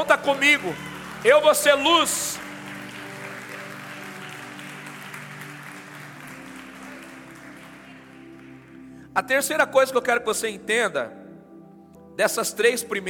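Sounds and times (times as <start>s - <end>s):
speech: 0.0s - 2.4s, 9.2s - 11.2s, 12.2s - 13.0s
audience applause: 0.0s - 9.0s.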